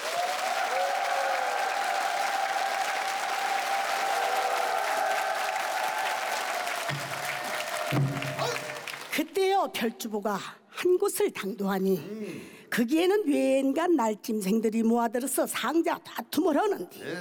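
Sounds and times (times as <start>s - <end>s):
audience applause opening a stage performance: 0.0s - 9.3s
speech: 9.6s - 17.1s.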